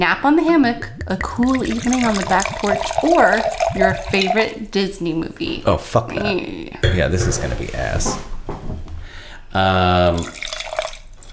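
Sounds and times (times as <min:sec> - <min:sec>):
speech: 0:00.0 - 0:08.3, 0:09.5 - 0:10.4
wine poured onto a laptop: 0:01.0 - 0:04.7, 0:10.0 - 0:11.3.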